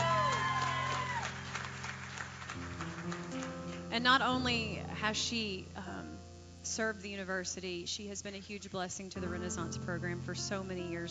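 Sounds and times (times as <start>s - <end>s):
audience cheering: 0.0s - 3.2s
audience applause: 0.0s - 3.8s
speech: 4.0s - 5.8s, 6.6s - 11.0s.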